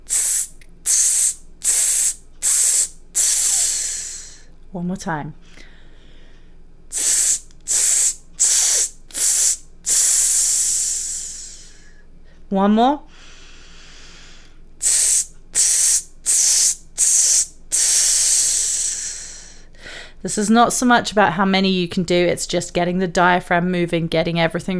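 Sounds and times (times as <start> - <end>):
voice exercise hiss bursts: 0.0 - 4.5, 6.9 - 11.9, 14.8 - 19.6
speech: 4.7 - 5.4, 12.5 - 13.1, 20.2 - 24.7.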